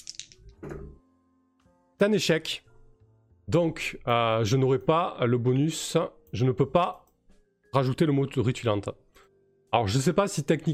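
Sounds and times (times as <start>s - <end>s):
two dice rolling: 0.0s - 0.6s
speech: 2.0s - 2.7s, 3.5s - 7.0s, 7.7s - 9.0s, 9.7s - 10.7s.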